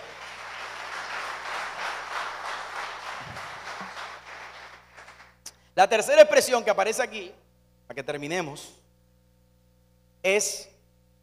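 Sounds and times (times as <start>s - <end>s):
church audience applause: 0.0s - 5.4s
speech: 5.8s - 8.8s, 10.2s - 10.7s.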